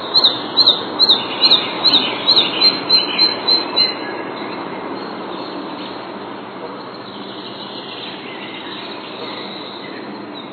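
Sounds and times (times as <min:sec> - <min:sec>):
red-breasted flycatcher song: 0:00.0 - 0:10.5.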